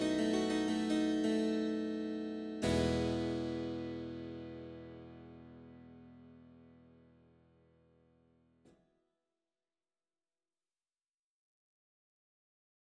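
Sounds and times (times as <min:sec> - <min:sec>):
harpsichord concerto: 0:00.0 - 0:04.9.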